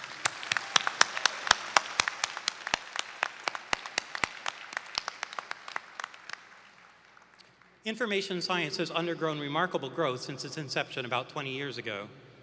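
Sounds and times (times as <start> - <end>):
audience applause at graduation ceremony: 0.0 - 7.4
speech: 7.8 - 12.2.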